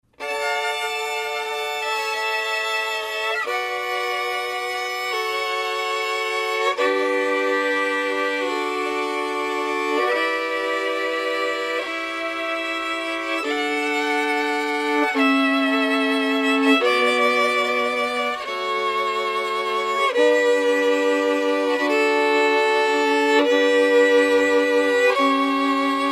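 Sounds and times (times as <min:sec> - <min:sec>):
two violins playing: 0:00.0 - 0:26.1.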